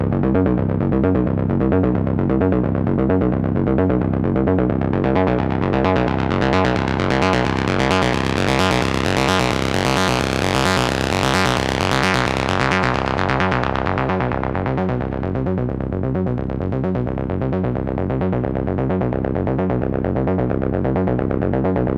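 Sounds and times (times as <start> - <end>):
bass note A: 0.0 - 21.9.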